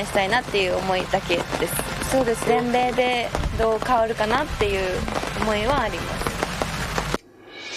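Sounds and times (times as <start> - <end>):
speech: 0.0 - 6.2
raindrops pattering on a tent roof outside a clubhouse: 0.0 - 7.2.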